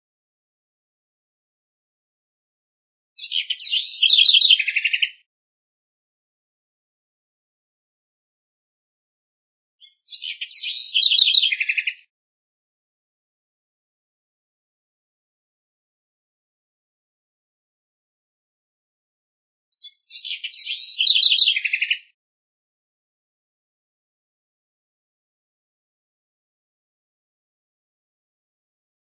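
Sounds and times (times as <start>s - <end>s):
house wren singing: 3.2s - 5.2s, 9.8s - 12.1s, 19.8s - 22.2s.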